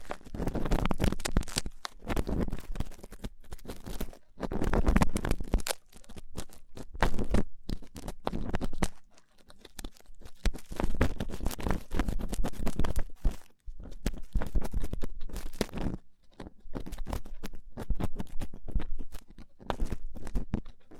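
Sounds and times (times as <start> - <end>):
rough ear cleaning, scratching and crackling rubs: 0.0 - 20.9.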